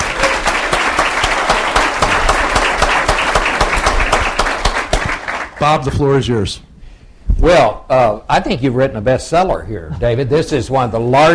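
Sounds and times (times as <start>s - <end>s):
crowd applauding: 0.0s - 5.8s
speech: 5.6s - 6.7s, 7.4s - 11.3s.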